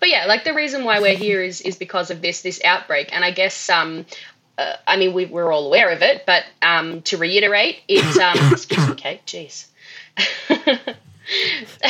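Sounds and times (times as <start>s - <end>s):
speech: 0.3s - 11.8s
person coughing into elbow: 8.0s - 9.0s, 11.1s - 11.8s.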